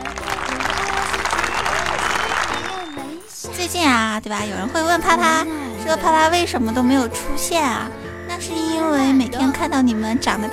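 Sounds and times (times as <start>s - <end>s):
applause: 0.0s - 3.3s
speech: 3.7s - 10.5s.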